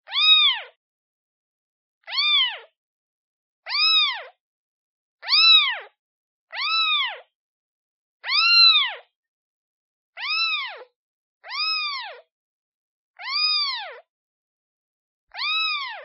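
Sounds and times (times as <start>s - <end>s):
kitten meowing calling for its mother: 0.1s - 0.8s, 2.0s - 2.7s, 3.7s - 4.3s, 5.2s - 5.9s, 6.5s - 7.3s, 8.2s - 9.1s, 10.2s - 12.2s, 13.2s - 14.0s, 15.3s - 16.0s.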